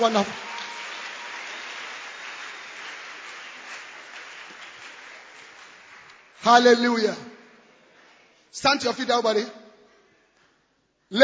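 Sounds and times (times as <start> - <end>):
speech: 0.0 - 0.5, 6.4 - 7.3, 8.5 - 9.6, 11.1 - 11.2
audience clapping: 0.0 - 6.9.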